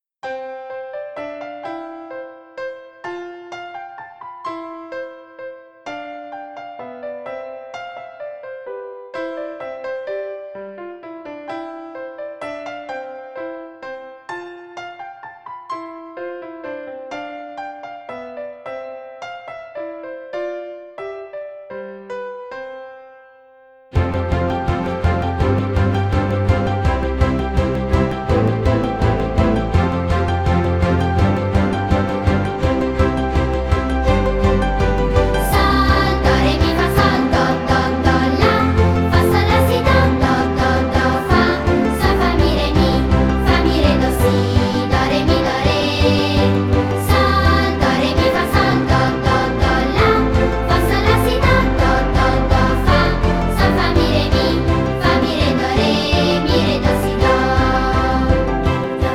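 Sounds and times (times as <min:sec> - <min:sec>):
minuet playback: 0:24.0 - 0:59.1.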